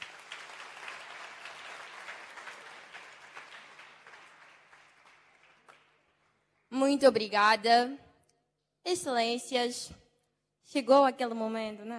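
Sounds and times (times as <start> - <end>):
applause: 0.0 - 7.0
speech: 6.9 - 8.0, 8.8 - 10.0, 10.7 - 11.9.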